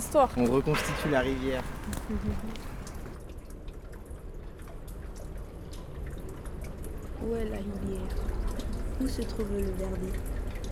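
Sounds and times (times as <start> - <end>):
water drops dripping: 0.0 - 10.7
speech: 0.1 - 2.8, 7.2 - 10.3.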